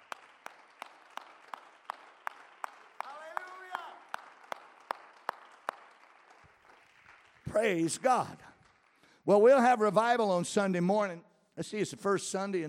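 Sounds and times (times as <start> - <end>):
audience clapping hands: 0.0 - 9.9
speech: 7.6 - 8.5, 9.3 - 12.6.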